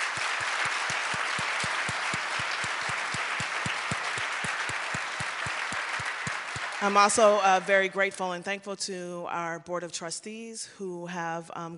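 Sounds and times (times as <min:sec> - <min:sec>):
audience applause: 0:00.0 - 0:07.7
speech: 0:06.8 - 0:11.7.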